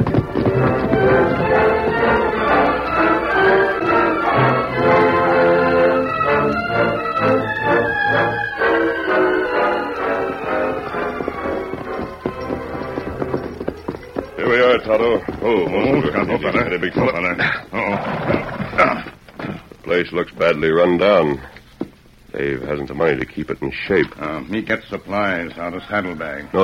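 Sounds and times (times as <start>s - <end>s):
music in a radio western: 0.0s - 16.9s
horse hoofbeats clip-clopping as riders ride off: 0.0s - 22.2s
speech: 20.0s - 21.5s, 22.4s - 26.6s.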